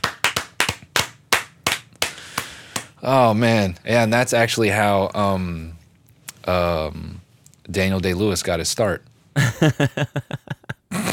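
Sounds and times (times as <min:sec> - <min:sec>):
slow hand clapping: 0:00.0 - 0:03.0
speech: 0:03.0 - 0:05.8, 0:06.4 - 0:10.5.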